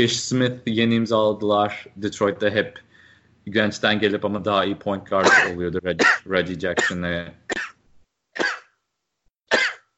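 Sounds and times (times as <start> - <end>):
speech: 0.0 - 7.7
person sneezing: 5.2 - 6.2, 8.4 - 8.7, 9.5 - 9.9.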